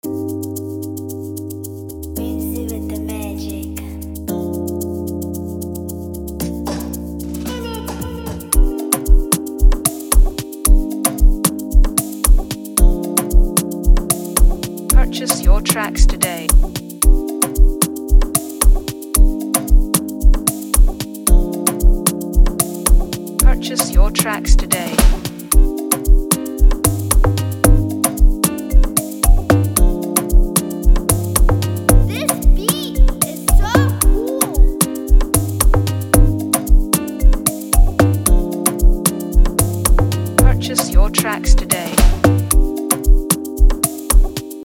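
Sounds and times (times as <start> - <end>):
afrobeat instrumental music: 0.0 - 44.6.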